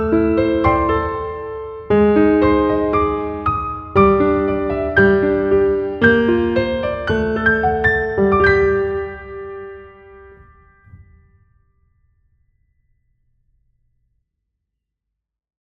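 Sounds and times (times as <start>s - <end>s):
piano: 0.0s - 12.5s.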